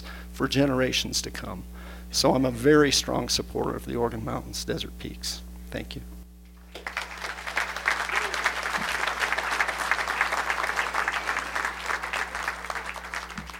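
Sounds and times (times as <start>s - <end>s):
speech: 0.4s - 6.1s
audience applause: 6.6s - 13.5s.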